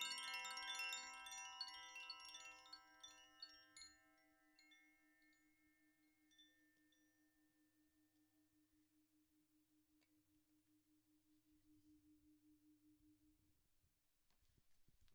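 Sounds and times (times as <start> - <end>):
singing bowls ringing: 0.0 - 8.0.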